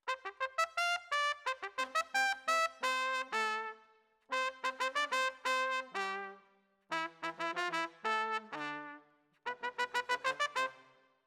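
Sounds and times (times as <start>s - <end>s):
trumpet: 0.0s - 11.1s.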